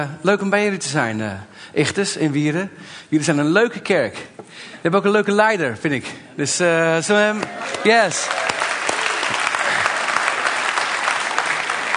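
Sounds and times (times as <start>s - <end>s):
speech: 0.0s - 8.5s
audience clapping: 7.3s - 11.9s.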